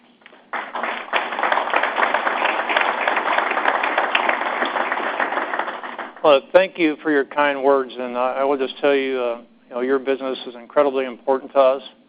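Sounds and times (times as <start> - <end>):
audience applause: 0.5 - 6.4
speech: 6.2 - 12.0.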